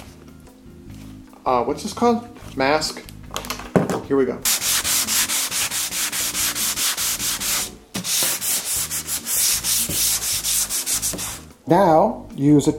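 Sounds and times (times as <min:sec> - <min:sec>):
speech: 0:01.4 - 0:03.4, 0:04.1 - 0:04.6, 0:11.7 - 0:12.7
hand sanding a polyurethane coat: 0:04.5 - 0:11.5.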